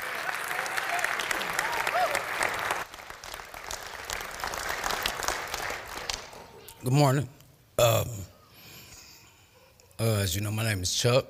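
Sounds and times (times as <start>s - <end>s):
crowd applauding: 0.0s - 6.7s
speech: 6.8s - 8.1s, 10.0s - 11.2s.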